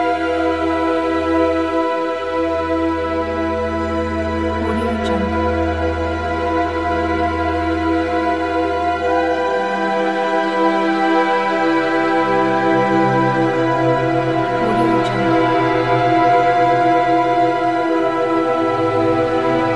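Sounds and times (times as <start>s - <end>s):
dark fantasy ambience: 0.0s - 19.7s.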